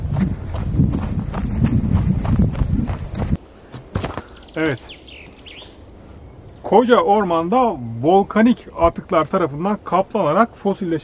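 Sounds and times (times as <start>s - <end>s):
quick footsteps walking outdoors: 0.0s - 5.4s
speech: 4.6s - 5.0s, 6.7s - 11.0s.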